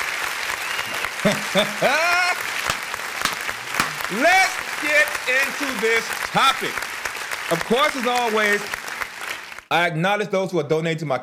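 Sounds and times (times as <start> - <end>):
audience applause after a comedy bit: 0.0 - 9.7
whoops: 0.6 - 2.4
laughter: 1.0 - 2.8
speech: 1.2 - 2.2, 4.1 - 6.9, 7.5 - 8.8, 9.7 - 11.2.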